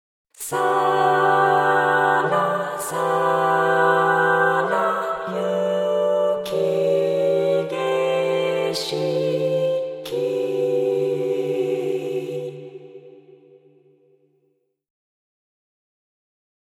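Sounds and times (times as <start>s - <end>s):
vocaloid synthesized singing voice: 0.4s - 13.6s.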